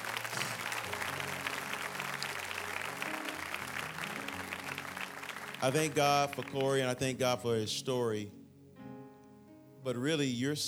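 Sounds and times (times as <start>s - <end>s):
audience clapping: 0.0s - 7.4s
speech: 5.6s - 8.4s, 9.8s - 10.6s.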